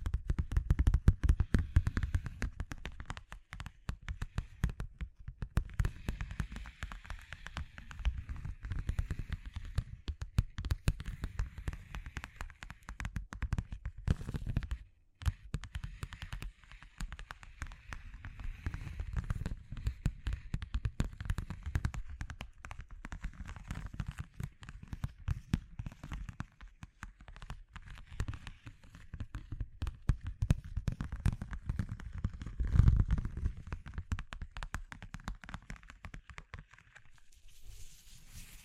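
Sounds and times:
crackling texture of rapid clicks and pops: 0:00.0 - 0:37.3.

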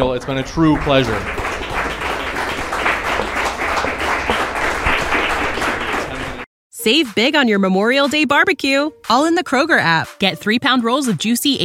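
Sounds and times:
speech: 0:00.0 - 0:01.4, 0:06.8 - 0:11.6
audience applause: 0:00.0 - 0:06.5.

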